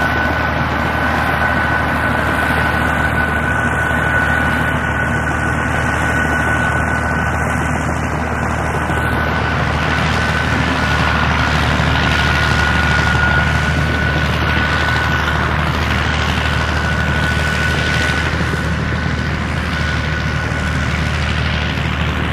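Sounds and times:
bog cutter machine engine starting up and idling: 0.0 - 22.3.

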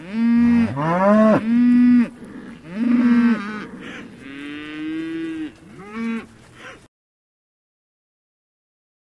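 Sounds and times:
cattle lowing: 0.0 - 6.8.

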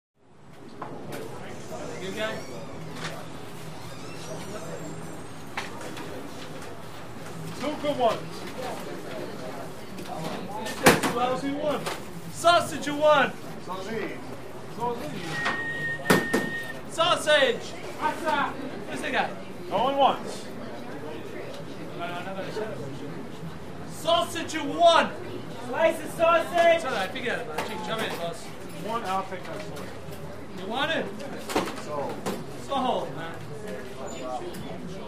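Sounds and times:
pizza parlor restaurant walla: 0.2 - 35.0
door opening and closing with squeak: 1.5 - 5.5, 15.2 - 16.8.

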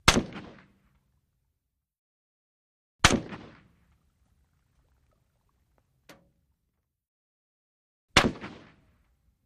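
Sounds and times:
Russian SKS rifle single shots: 0.0 - 0.8, 3.0 - 3.7, 8.2 - 8.8.

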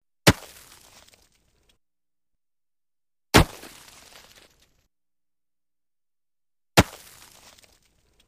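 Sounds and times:
axe or pick chopping ice on a lake shore: 0.2 - 1.2, 3.4 - 4.5, 6.8 - 7.8.

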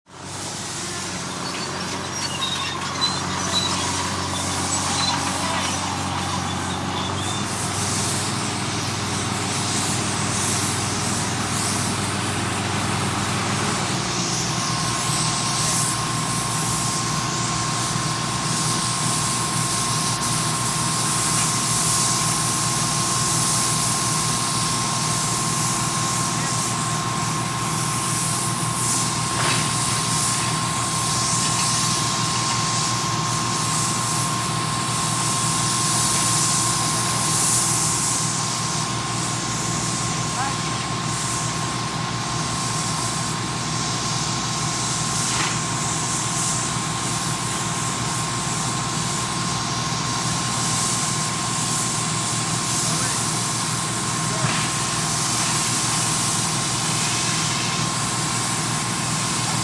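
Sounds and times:
bulldozer at a demolition site: 0.1 - 59.6
compressor running at a demolition site: 0.1 - 59.6
voices at a demolition site: 0.7 - 9.2, 40.2 - 41.0, 52.8 - 54.9.

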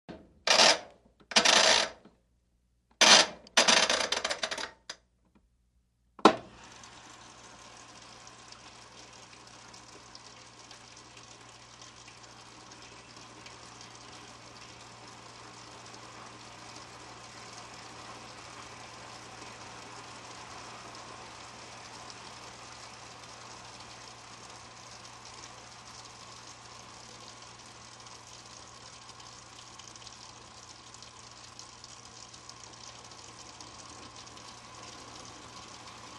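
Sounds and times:
washing machine rotary switch turning: 0.5 - 2.0, 3.0 - 5.0.

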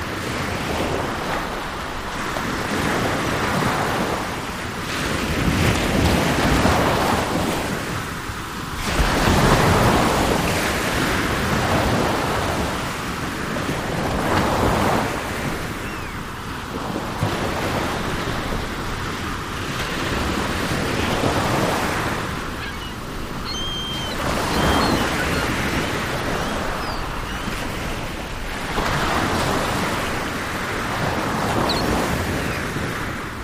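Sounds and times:
ocean ambience: 0.0 - 33.4
seagulls: 15.7 - 16.3, 20.9 - 28.1, 31.5 - 32.8.

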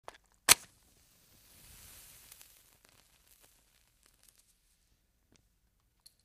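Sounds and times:
small match striking: 0.2 - 4.8.

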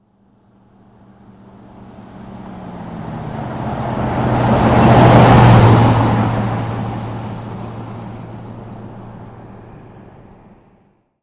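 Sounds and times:
Jeep Wagoneer passing by at 30 mph: 0.8 - 10.6.

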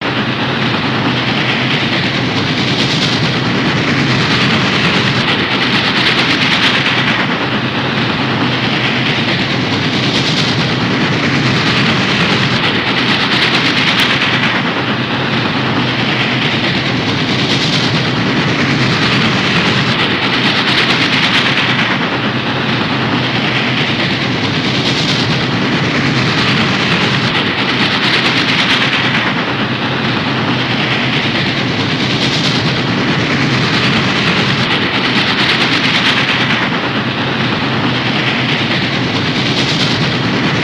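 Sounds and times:
fast long steam locomotive: 0.0 - 40.6.

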